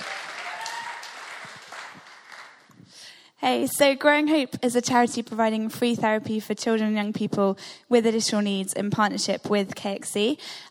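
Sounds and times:
audience applause: 0.0 - 2.7
speech: 3.4 - 10.6.

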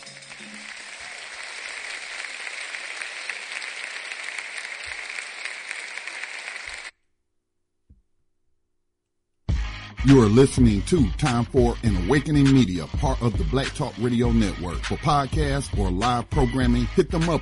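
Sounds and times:
crowd applauding: 0.0 - 6.9
speech: 10.0 - 17.4.

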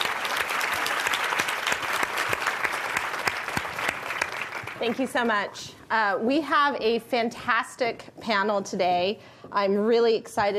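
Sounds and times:
audience applause welcoming a speaker introducing a panel: 0.0 - 5.3
speech: 4.8 - 10.5.

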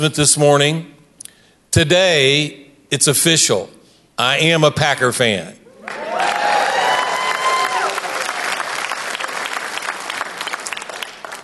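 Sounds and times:
speech: 0.0 - 1.0, 1.7 - 6.0
crowd whooping and shouting: 5.7 - 8.6
crowd applauding: 5.8 - 11.4.

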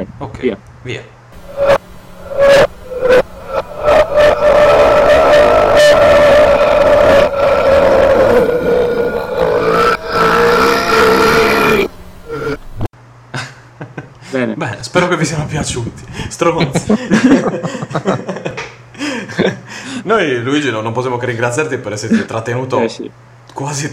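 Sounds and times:
speech: 0.1 - 1.8, 15.0 - 18.4, 19.4 - 23.9
burps played in reverse: 1.4 - 12.9
laughter: 16.6 - 19.7.

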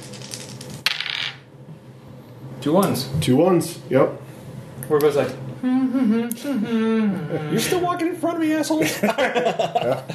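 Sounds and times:
three dice being rolled: 0.0 - 1.4
speech: 2.6 - 4.3, 4.9 - 10.1
laughter: 8.7 - 10.1.

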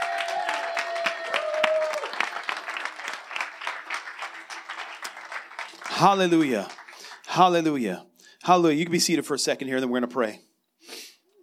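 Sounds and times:
church congregation applauding: 0.0 - 7.9
speech: 6.0 - 6.8, 7.4 - 10.5.

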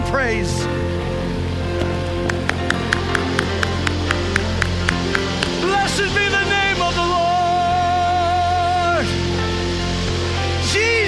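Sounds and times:
sustained droning musical backdrop: 0.0 - 11.0
speech: 0.1 - 0.8
audience clapping hands: 1.8 - 6.0.

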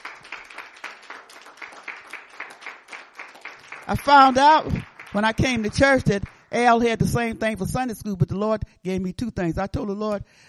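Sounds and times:
audience clapping hands: 0.0 - 7.3
speech: 3.9 - 10.4.

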